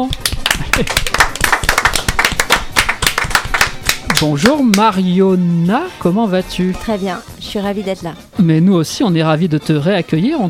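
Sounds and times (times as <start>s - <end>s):
speech: 0.0s - 0.2s, 0.8s - 1.2s, 4.2s - 10.4s
audience applause: 0.4s - 4.3s.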